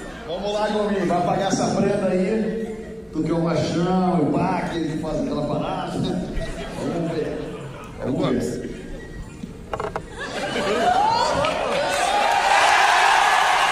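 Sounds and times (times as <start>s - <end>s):
speech: 0.3s - 7.4s, 8.0s - 8.6s
laughter: 5.9s - 12.1s
crowd cheering and shouting: 10.2s - 13.7s.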